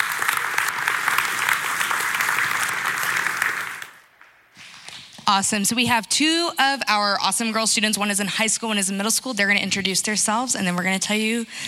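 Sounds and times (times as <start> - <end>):
audience round of applause: 0.0 - 4.1
speech: 5.3 - 11.6.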